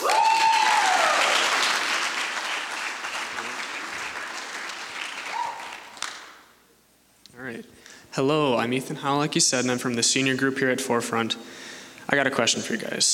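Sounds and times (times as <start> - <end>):
audience applauding a student speaker: 0.0 - 6.6
speech: 8.2 - 13.1.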